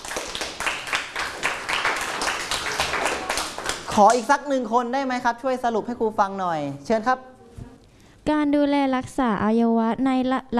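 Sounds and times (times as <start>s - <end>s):
classroom applause for a classmate: 0.0s - 4.2s
speech: 4.0s - 7.3s, 8.2s - 10.5s.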